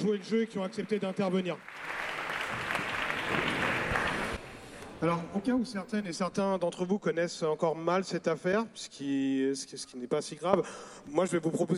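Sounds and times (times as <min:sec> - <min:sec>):
speech: 0:00.0 - 0:02.6, 0:03.3 - 0:03.8, 0:05.0 - 0:11.7
audience applause at a meeting: 0:00.0 - 0:04.4.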